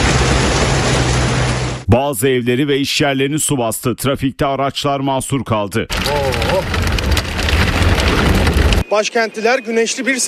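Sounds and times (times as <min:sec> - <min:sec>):
heavy rain from a sudden afternoon downpour in Ankara: 0:00.0 - 0:01.8, 0:05.9 - 0:08.8
speech: 0:01.9 - 0:06.9, 0:08.1 - 0:10.2.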